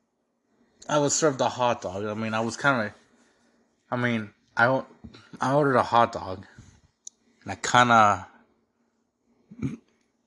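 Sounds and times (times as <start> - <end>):
speech: 0.9 - 3.0, 3.9 - 6.5, 7.4 - 8.3, 9.5 - 9.8
small burp: 9.5 - 9.9.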